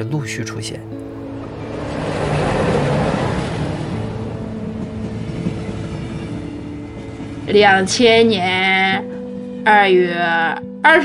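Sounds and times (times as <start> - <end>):
speech: 0.0 - 1.2, 7.5 - 11.0
train running on rails: 0.9 - 9.6.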